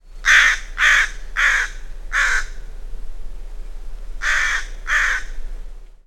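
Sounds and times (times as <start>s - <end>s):
crow: 0.2s - 2.6s, 4.2s - 5.4s.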